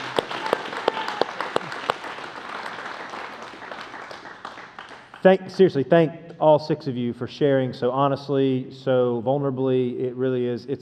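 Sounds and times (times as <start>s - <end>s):
audience applause: 0.0s - 5.2s
speech: 5.2s - 10.8s.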